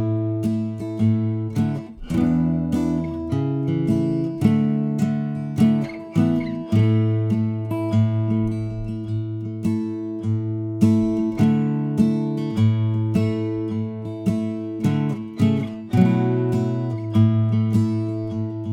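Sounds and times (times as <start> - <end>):
guitar played at full speed: 0.0 - 18.3.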